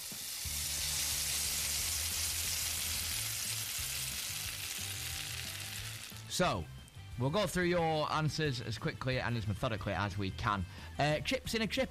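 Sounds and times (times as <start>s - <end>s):
meat searing on a barbecue: 0.0s - 6.5s
speech: 6.4s - 11.8s.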